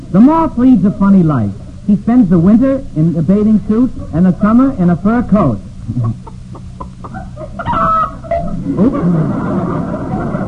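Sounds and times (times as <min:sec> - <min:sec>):
speech: 0:00.1 - 0:06.4, 0:08.7 - 0:09.9
hen cackling after laying an egg: 0:05.9 - 0:08.9.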